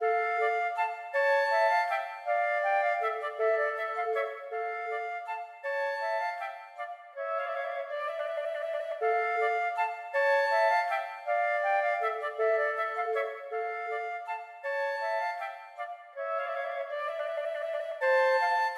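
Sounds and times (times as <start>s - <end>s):
minuet for flute duet: 0.0s - 18.7s.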